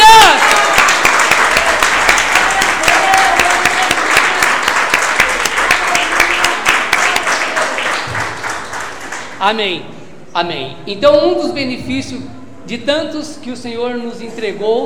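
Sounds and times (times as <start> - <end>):
audience applauding: 0.0 - 9.4
speech: 9.5 - 14.8.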